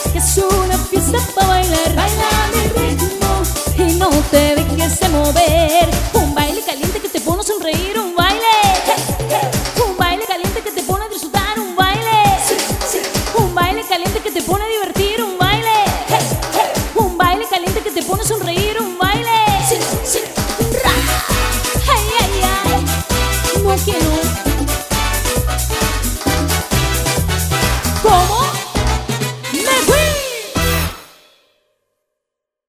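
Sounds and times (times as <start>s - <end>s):
hot pop dance music: 0.0s - 31.0s.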